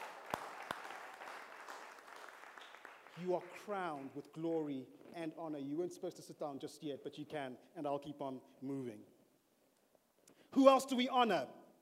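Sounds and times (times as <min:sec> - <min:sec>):
crowd applause: 0:00.0 - 0:04.2
speech: 0:03.2 - 0:09.1, 0:10.5 - 0:11.6.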